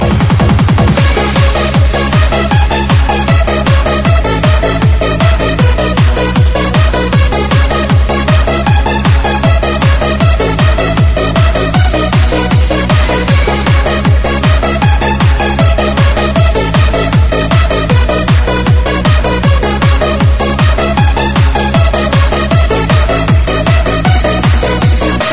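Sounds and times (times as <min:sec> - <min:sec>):
disco music: 0:00.0 - 0:25.3.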